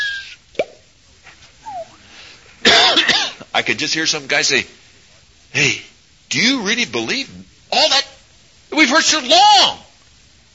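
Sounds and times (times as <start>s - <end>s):
raindrop sound effect plop: 0.5s - 0.8s
speech: 3.6s - 4.8s, 5.6s - 8.0s, 8.8s - 9.9s.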